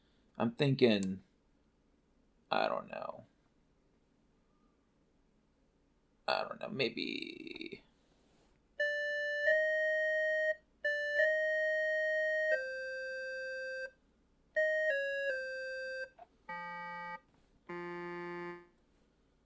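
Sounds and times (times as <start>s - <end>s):
speech: 0.4s - 1.3s, 2.5s - 3.3s, 6.3s - 7.9s
Casio keyboard electronic tones: 8.8s - 14.0s, 14.6s - 18.8s.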